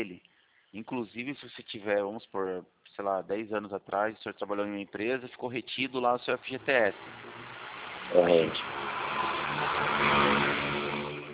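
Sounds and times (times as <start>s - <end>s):
speech: 0.0s - 7.3s, 8.1s - 8.9s
noisy motorcycle passing by: 6.2s - 11.3s.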